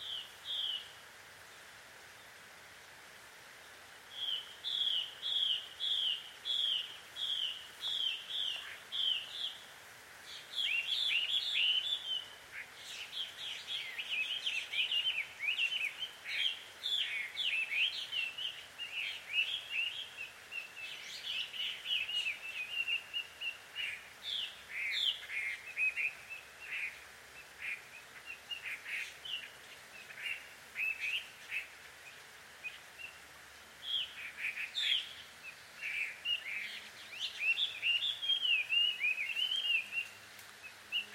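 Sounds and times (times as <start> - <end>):
soft steady hiss: 0.0 - 41.1
birds quarrelling at dusk in Takao Japan: 4.1 - 41.1.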